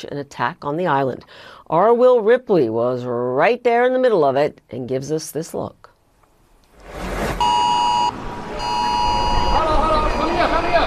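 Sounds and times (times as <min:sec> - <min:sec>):
speech: 0:00.0 - 0:05.8
air raid sirens: 0:07.4 - 0:10.8.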